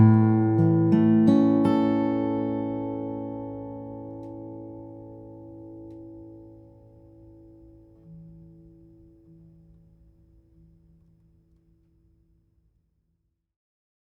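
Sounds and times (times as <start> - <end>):
steel-string flattop guitar: 0.0 - 11.0.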